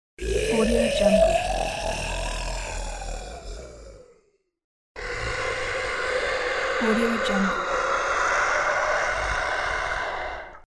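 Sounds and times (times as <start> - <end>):
demon growls: 0.2 - 10.7.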